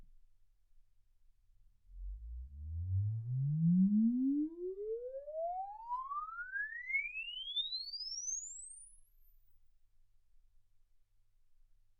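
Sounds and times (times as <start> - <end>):
exponential sine sweep from 10 Hz to 24 kHz: 2.0 - 9.4.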